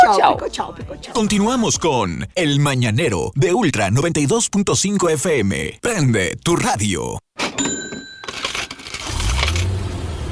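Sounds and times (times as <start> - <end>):
speech: 0.1 - 8.4
coins dropping: 7.4 - 9.7.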